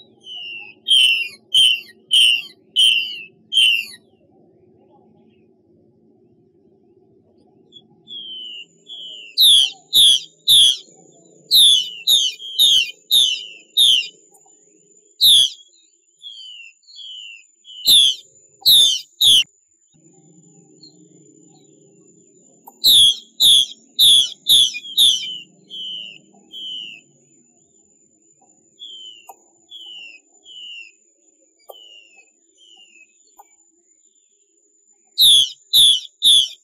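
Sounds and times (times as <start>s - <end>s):
Chinese hwamei song: 0.0s - 4.0s, 7.7s - 14.2s, 15.2s - 19.5s, 22.7s - 27.1s, 28.8s - 31.0s, 35.2s - 36.6s.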